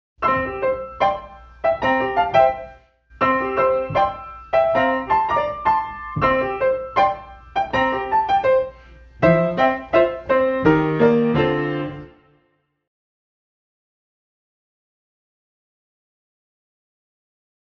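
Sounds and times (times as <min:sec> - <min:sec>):
quiz piano music: 0:00.2 - 0:12.9.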